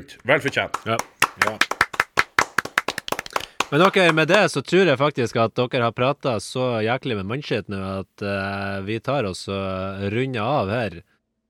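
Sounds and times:
speech: 0.0s - 1.8s, 3.7s - 11.1s
small group clapping: 0.0s - 4.5s.

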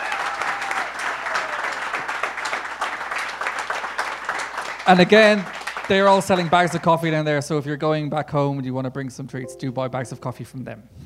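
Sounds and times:
audience applause: 0.0s - 7.2s
speech: 4.9s - 11.0s.

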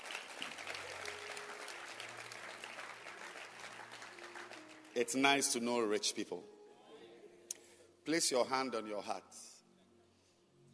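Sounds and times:
audience clapping hands: 0.0s - 5.3s
speech: 5.0s - 6.6s, 8.0s - 9.5s.

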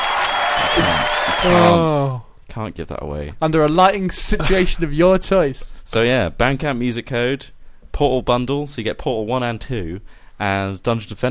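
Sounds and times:
crowd cheering sound effect: 0.0s - 2.2s
speech: 0.8s - 11.2s.

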